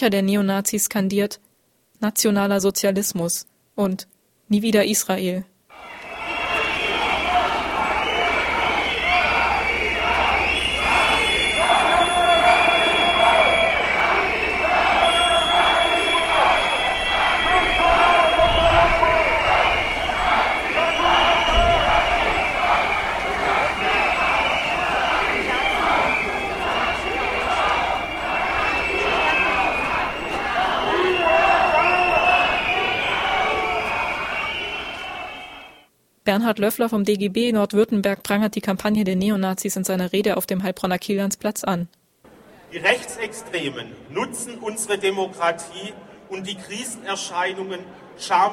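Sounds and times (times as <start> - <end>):
speech: 0.0 - 6.0, 36.5 - 42.0, 42.7 - 48.5
crowd booing demonstrators: 5.7 - 35.9.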